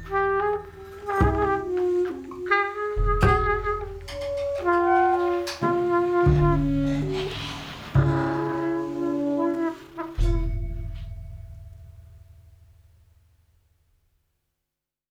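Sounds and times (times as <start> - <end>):
quartet playing: 0.0 - 11.1.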